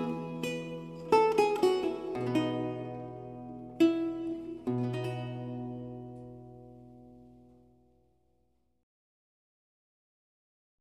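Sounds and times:
recercar on renaissance lute: 0.0s - 7.6s.

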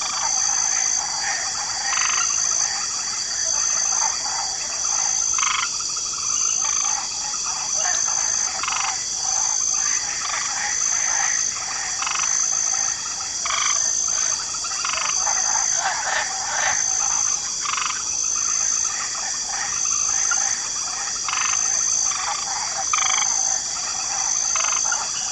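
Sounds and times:
light chorus of frogs croaking in a swamp: 0.0s - 25.3s.

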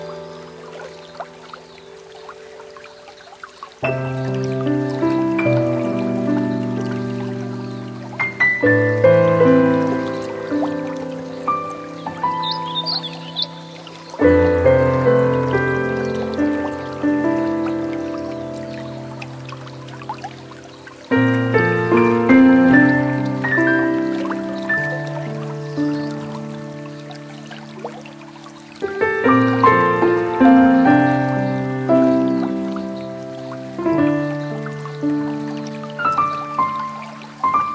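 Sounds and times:
Warbling Vireo singing: 0.0s - 37.7s
piano: 0.0s - 37.7s.

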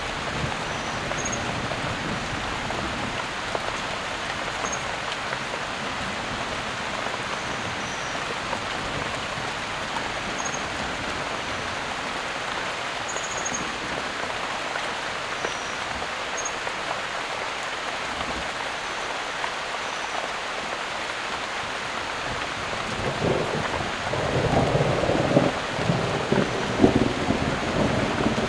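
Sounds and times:
heavy downpour: 0.0s - 28.4s
thunder: 23.0s - 28.4s.

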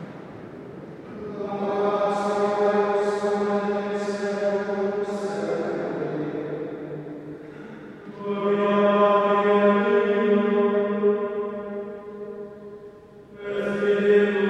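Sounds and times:
monks chanting: 1.0s - 6.7s, 8.0s - 11.7s, 13.4s - 14.4s.

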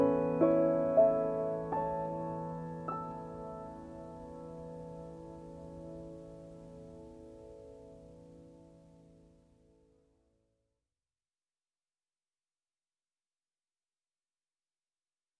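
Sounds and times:
piano reprise: 0.0s - 9.9s.

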